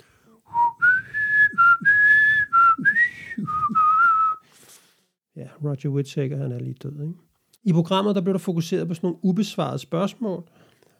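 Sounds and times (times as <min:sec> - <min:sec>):
whistled theme tune melody: 0:00.5 - 0:04.4
speech: 0:05.6 - 0:10.6.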